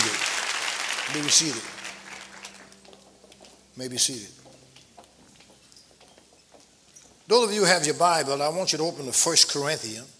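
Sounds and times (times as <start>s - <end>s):
audience clapping: 0.0s - 3.5s
speech: 1.1s - 1.8s, 3.8s - 4.4s, 7.3s - 10.1s.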